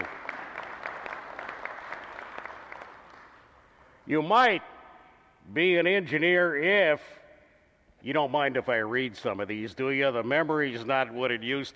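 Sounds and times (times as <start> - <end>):
audience applause: 0.0 - 3.4
speech: 4.1 - 4.7, 5.5 - 7.2, 8.0 - 11.7.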